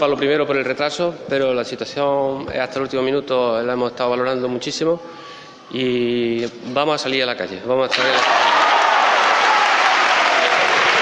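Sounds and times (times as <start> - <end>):
speech: 0.0 - 8.5
crowd applauding after announcement: 7.9 - 11.0.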